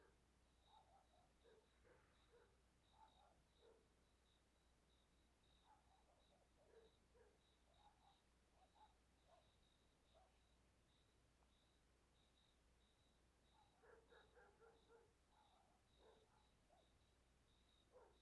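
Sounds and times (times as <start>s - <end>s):
distant dogs barking in a rural area: 0.0s - 3.9s, 5.6s - 10.4s, 13.5s - 17.0s, 17.9s - 18.2s
crickets chirping in front of a church at night: 0.6s - 18.2s.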